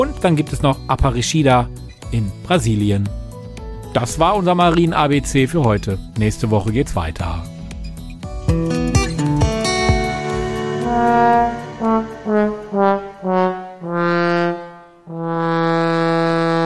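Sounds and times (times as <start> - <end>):
speech: 0.0 - 3.2, 3.9 - 7.5, 12.3 - 13.5
trombone played by an orchestra: 9.5 - 16.6.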